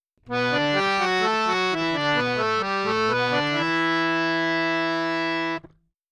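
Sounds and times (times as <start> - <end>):
dry violin melody in G major: 0.3 - 5.7.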